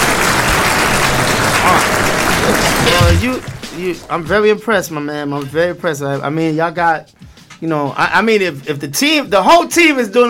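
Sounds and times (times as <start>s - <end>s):
audience applause: 0.0s - 4.4s
speech: 3.1s - 10.2s.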